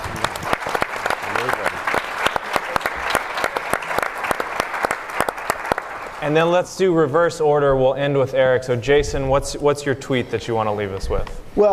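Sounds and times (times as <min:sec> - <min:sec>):
audience applause: 0:00.0 - 0:06.4
speech: 0:06.3 - 0:11.7.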